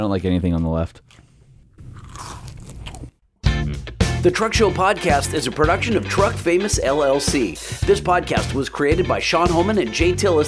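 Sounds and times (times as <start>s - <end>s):
speech: 0.0s - 1.2s, 4.2s - 10.4s
noisy crackling chewing: 0.5s - 3.5s
crunchy bite into a Twix candy bar: 1.0s - 3.4s.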